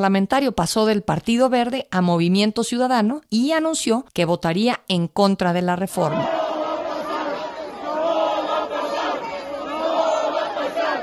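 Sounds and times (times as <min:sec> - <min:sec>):
speech: 0:00.0 - 0:06.4
legislators shouting in chamber: 0:06.1 - 0:11.0.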